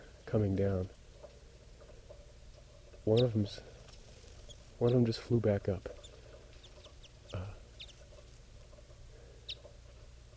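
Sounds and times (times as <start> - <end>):
speech: 0.3 - 1.0, 3.1 - 3.7, 4.8 - 6.0
female bird softly calling from treetop: 3.0 - 9.9.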